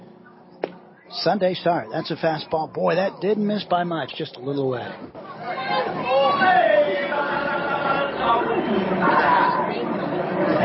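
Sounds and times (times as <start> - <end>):
speech: 1.1 - 6.6
baseball stadium crowd reacting disapprovingly: 5.2 - 10.6.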